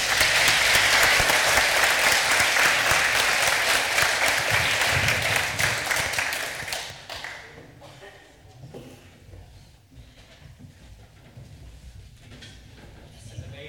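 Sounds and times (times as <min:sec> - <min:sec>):
audience applause: 0:00.0 - 0:07.5.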